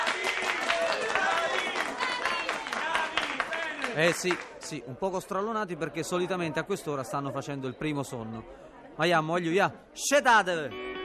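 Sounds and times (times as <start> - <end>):
audience applause: 0.0 - 4.8
speech: 4.0 - 10.9.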